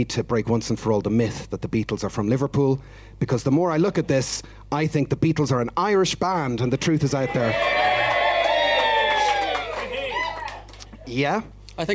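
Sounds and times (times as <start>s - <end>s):
speech: 0.0s - 8.0s, 11.1s - 11.9s
crowd cheering: 6.6s - 11.0s.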